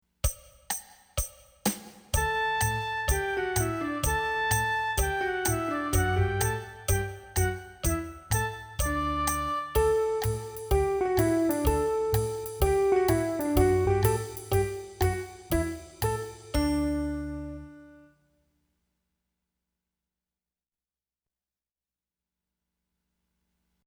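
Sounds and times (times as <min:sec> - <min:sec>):
swing musette music: 0:02.2 - 0:18.1.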